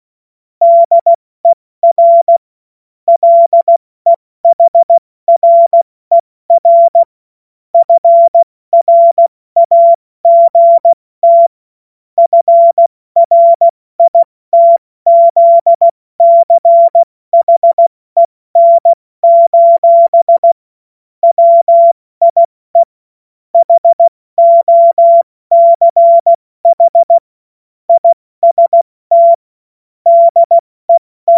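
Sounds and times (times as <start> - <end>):
CW Morse code beeps: 0.6 - 1.2, 1.8 - 2.4, 3.1 - 3.8, 4.5 - 7.1, 7.8 - 11.5, 12.2 - 20.6, 21.2 - 22.9, 23.6 - 27.2, 27.9 - 29.4, 30.1 - 31.3.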